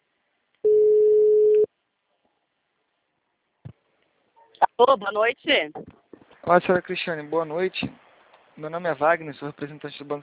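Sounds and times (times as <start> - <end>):
telephone tone while placing a call: 0.6 - 1.7
speech: 4.8 - 8.0, 8.6 - 10.2.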